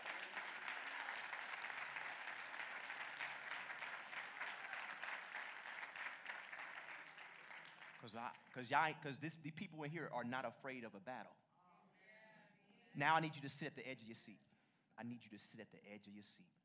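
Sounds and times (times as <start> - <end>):
audience hand clapping: 0.0 - 8.5
speech: 8.0 - 11.4, 13.0 - 16.6.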